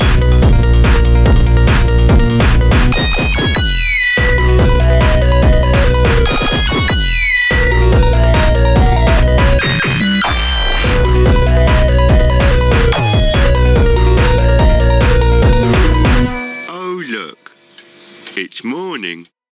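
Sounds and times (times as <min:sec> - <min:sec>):
144 bpm instrumental music: 0:00.0 - 0:17.8.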